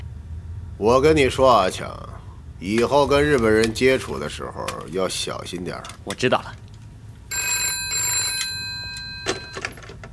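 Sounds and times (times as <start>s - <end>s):
speech: 0.8s - 6.6s
telephone ringing: 7.3s - 9.8s.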